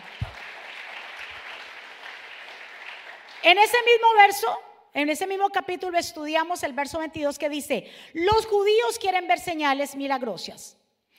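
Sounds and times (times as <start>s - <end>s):
audience applause: 0.0s - 3.5s
speech: 3.4s - 11.1s.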